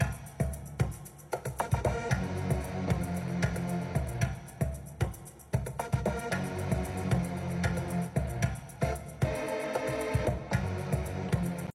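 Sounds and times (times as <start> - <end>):
amapiano music: 1.6 - 11.7.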